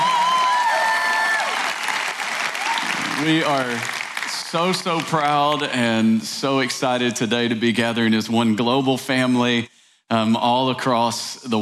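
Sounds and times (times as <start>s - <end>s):
crowd whooping and cheering: 0.0s - 4.3s
large crowd applauding: 0.0s - 5.7s
speech: 3.2s - 11.6s.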